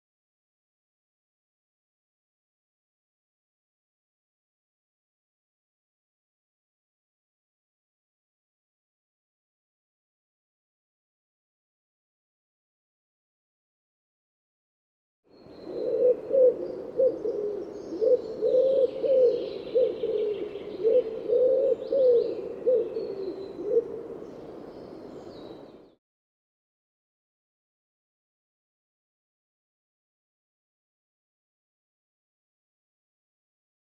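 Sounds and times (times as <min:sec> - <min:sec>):
bird cooing in low soft hooting notes: 0:15.3 - 0:24.4.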